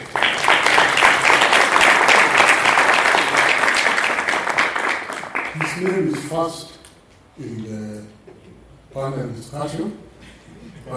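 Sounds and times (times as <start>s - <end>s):
clapping: 0.0s - 6.3s
speech: 5.8s - 6.8s, 7.4s - 8.1s, 9.0s - 10.9s.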